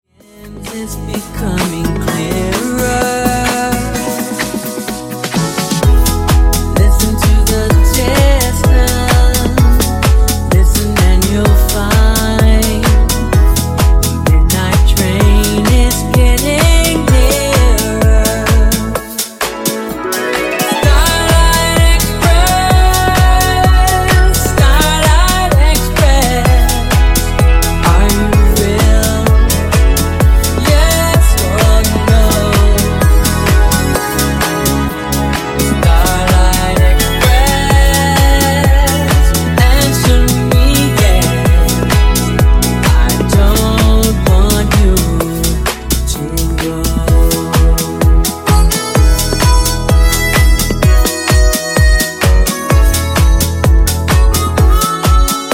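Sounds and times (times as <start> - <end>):
funk bootleg: 0.0 - 55.5.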